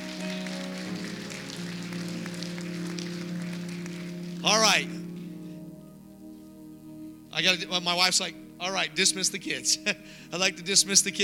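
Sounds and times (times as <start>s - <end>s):
audience clapping: 0.0s - 4.8s
low organ-like tones: 0.0s - 11.2s
speech: 4.4s - 5.0s, 7.4s - 11.2s.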